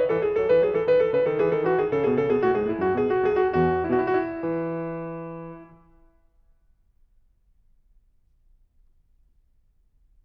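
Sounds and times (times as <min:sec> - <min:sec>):
baroque dance piece: 0:00.0 - 0:06.0.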